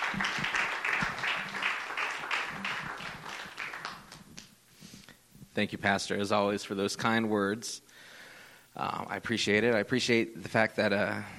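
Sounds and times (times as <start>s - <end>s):
church audience applauding to welcome a speaker to the podium: 0.0s - 4.3s
speech: 5.6s - 7.9s, 8.8s - 11.3s.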